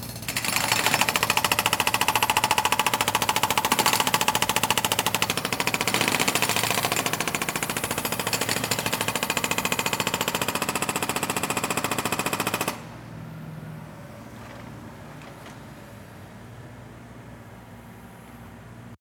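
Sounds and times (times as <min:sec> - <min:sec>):
jackhammer: 0:00.0 - 0:12.9.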